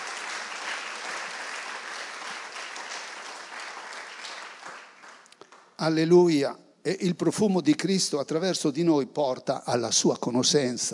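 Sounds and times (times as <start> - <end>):
audience applause: 0.0 - 5.4
speech: 5.8 - 10.9.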